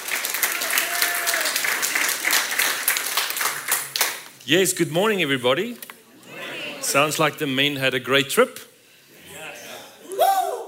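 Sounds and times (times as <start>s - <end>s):
audience applause welcoming a guest speaker: 0.0s - 4.3s
speech: 4.5s - 5.9s, 6.9s - 8.6s.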